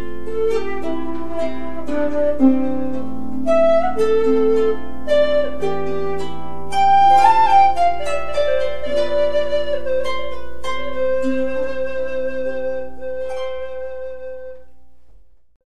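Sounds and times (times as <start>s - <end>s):
harp: 0.0s - 15.3s.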